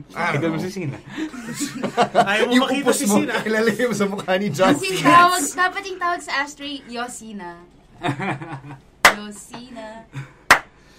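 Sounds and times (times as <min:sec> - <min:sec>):
speech: 0:00.0 - 0:10.3
laughter: 0:00.2 - 0:05.6, 0:08.0 - 0:08.8
slow clap: 0:09.0 - 0:09.2, 0:10.5 - 0:10.8.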